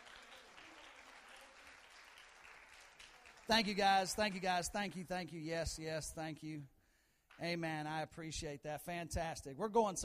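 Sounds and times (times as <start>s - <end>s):
audience applause: 0.0s - 4.6s
speech: 3.5s - 6.7s, 7.4s - 10.0s.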